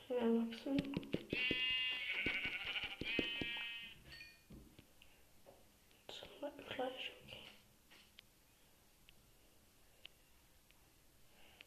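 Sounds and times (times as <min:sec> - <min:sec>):
speech: 0:00.1 - 0:01.5
lamb bleating: 0:01.3 - 0:04.0.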